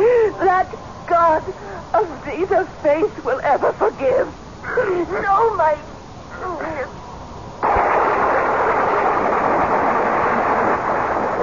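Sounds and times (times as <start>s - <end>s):
speech: 0.6s - 7.0s
lightning strike: 7.6s - 11.4s
thunder: 7.6s - 11.4s.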